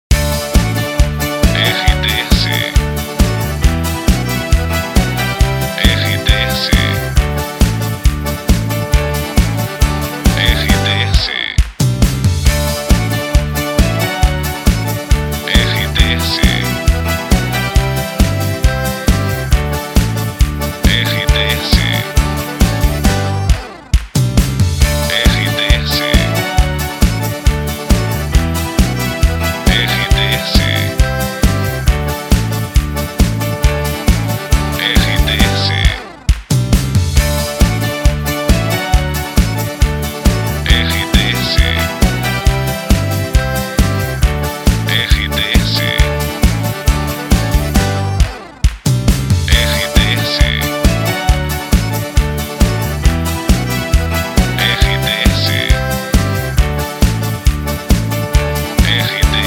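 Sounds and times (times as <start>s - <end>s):
sertanejo party background music for voice-over: 0.1s - 59.4s.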